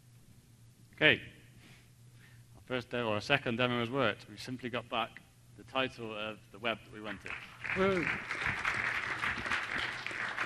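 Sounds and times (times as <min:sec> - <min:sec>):
speech: 0:01.0 - 0:01.4, 0:02.7 - 0:08.6
audience applause: 0:07.2 - 0:10.4.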